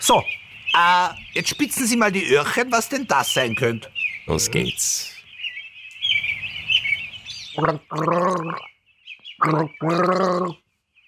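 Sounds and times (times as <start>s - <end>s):
speech: 0.0s - 5.1s, 7.6s - 8.7s, 9.4s - 10.6s
person gargling water: 7.6s - 8.7s, 9.4s - 10.6s.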